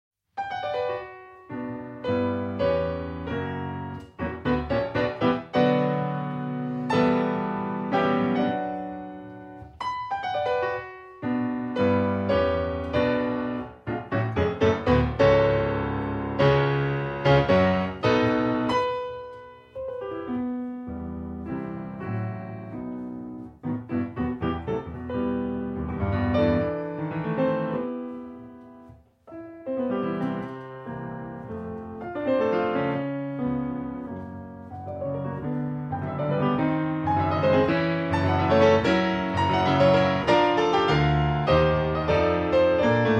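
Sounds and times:
piano sonata in B minor, allegro maestoso: 0.2s - 43.1s.

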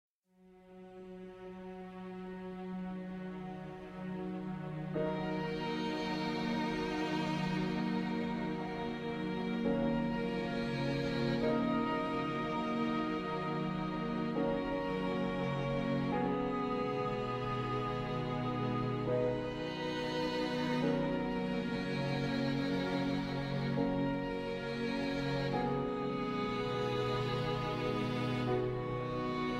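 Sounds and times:
lullaby music: 0.6s - 29.5s.

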